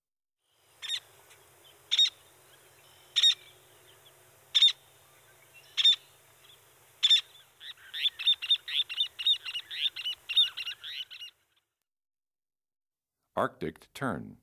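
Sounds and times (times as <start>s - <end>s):
Gull-Billed, Royal, Caspian, Least, Arctic and Common Terns calling: 0.5s - 11.7s.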